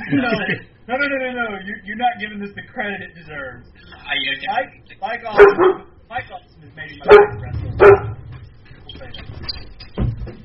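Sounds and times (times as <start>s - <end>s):
speech: 0.1s - 8.2s
dog barking: 5.4s - 5.9s, 7.0s - 8.2s.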